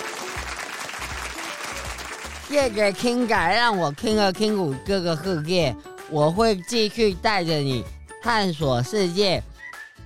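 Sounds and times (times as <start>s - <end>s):
applause: 0.0s - 3.6s
speech: 2.5s - 9.5s.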